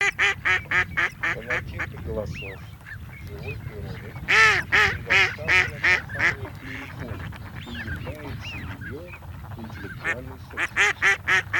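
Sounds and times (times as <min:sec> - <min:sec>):
mallard: 0:00.0 - 0:11.5.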